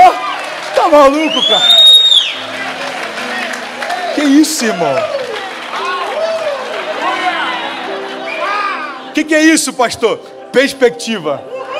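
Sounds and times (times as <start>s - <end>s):
audience applauding: 0.0s - 8.9s
speech: 0.9s - 1.8s, 4.2s - 5.2s, 9.2s - 11.5s.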